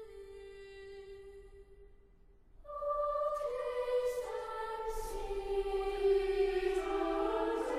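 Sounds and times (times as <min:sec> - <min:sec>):
choir singing: 0:02.6 - 0:07.7.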